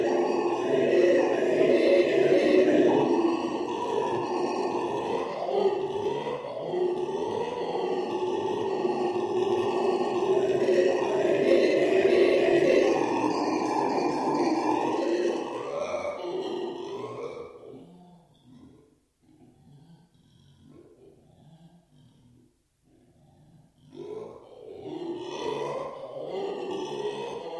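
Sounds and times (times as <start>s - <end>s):
black-and-gold howler monkey deep rasping roar: 0.0s - 27.5s.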